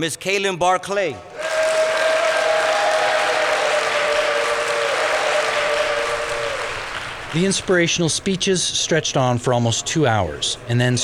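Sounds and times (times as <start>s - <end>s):
speech: 0.0s - 1.3s, 7.3s - 11.0s
audience clapping for prison staff at an inmate program ceremony: 1.3s - 8.1s.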